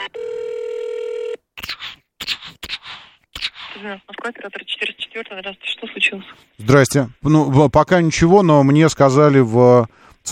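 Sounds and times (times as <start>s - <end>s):
buzzing telephone tone while an emergency police call is placed: 0.0s - 1.4s
speech: 3.8s - 10.2s.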